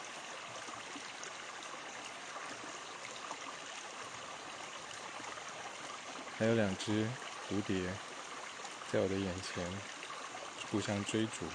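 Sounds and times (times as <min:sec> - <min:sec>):
small clear stream babbling: 0:00.0 - 0:11.5
speech: 0:06.4 - 0:08.1, 0:08.9 - 0:10.0, 0:10.7 - 0:11.5.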